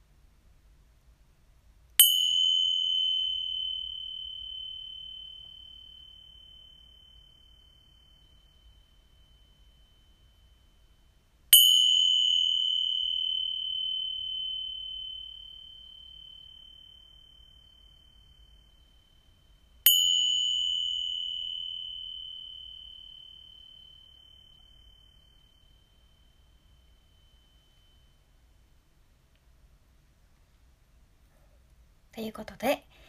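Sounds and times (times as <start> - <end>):
purification chimes struck: 2.0 - 10.9, 11.6 - 28.5
speech: 32.2 - 33.0.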